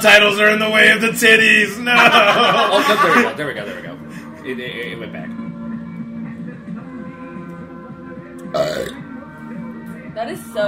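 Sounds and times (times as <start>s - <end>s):
speech: 0.0s - 5.4s, 8.6s - 9.0s, 10.2s - 10.6s
laughter: 1.9s - 3.9s
long low croaky burp: 8.5s - 9.0s.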